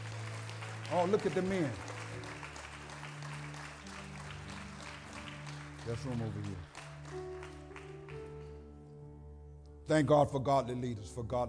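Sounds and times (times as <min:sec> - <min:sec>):
audience hand clapping: 0:00.0 - 0:08.6
speech: 0:00.9 - 0:01.9, 0:05.8 - 0:07.3, 0:09.9 - 0:11.4.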